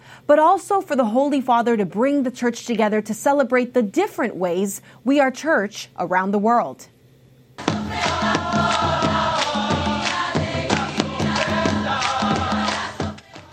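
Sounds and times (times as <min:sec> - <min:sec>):
speech: 0:00.3 - 0:06.9
crowd cheering at World Youth Day: 0:07.6 - 0:13.5
sharp rhythmic hits or claps: 0:07.6 - 0:13.5
voices chanting: 0:07.6 - 0:13.5.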